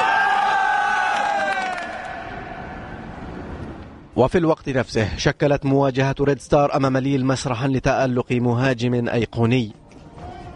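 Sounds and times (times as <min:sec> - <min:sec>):
football fans cheering celebrating victory: 0:00.0 - 0:03.6
speech: 0:04.2 - 0:09.8.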